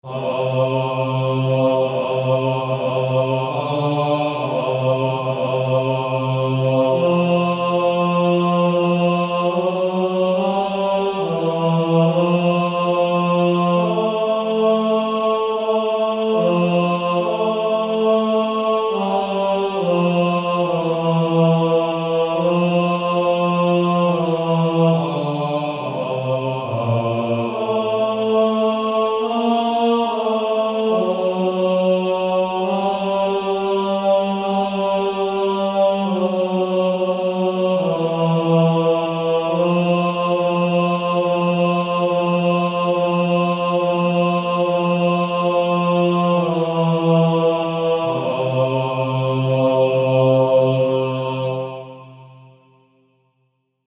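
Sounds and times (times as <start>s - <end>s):
male choir singing: 0.0s - 52.8s.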